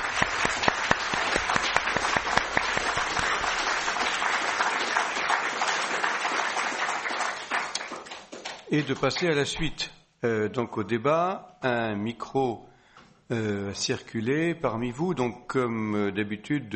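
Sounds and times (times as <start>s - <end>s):
applause: 0.0s - 9.4s
speech: 8.7s - 12.7s, 13.3s - 16.7s.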